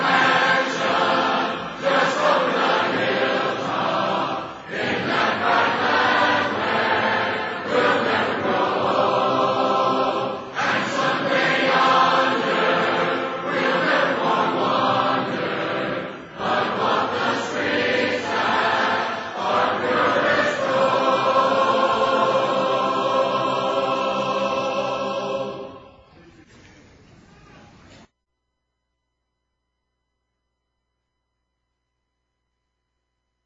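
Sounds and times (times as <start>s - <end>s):
a cappella hymn: 0.0s - 26.1s.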